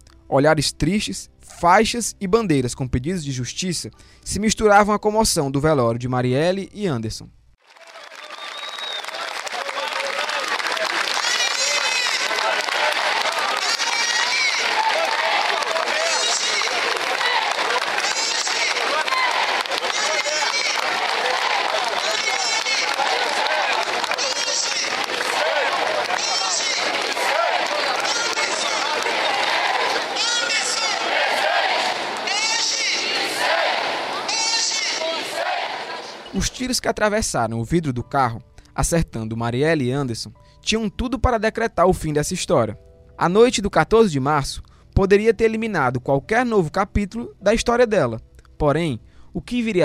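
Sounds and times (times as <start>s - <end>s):
speech: 0.3s - 7.4s, 36.7s - 49.8s
large crowd gathered outside a building: 7.6s - 36.8s.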